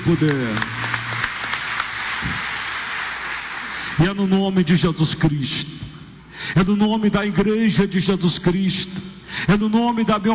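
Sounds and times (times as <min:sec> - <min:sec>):
speech: 0:00.0 - 0:00.8, 0:04.0 - 0:05.8, 0:06.4 - 0:10.3
crowd applauding: 0:00.0 - 0:04.3.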